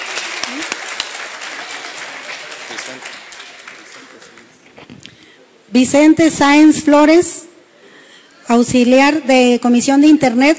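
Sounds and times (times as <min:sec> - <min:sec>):
audience applause: 0:00.0 - 0:04.8
speech: 0:02.9 - 0:03.2, 0:05.7 - 0:07.4, 0:08.5 - 0:10.5.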